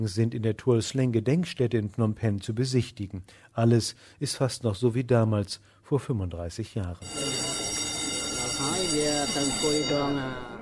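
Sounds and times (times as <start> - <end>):
speech: 0.0 - 7.6, 8.6 - 10.5
courtroom electric bell ringing to resume proceedings: 7.0 - 10.5.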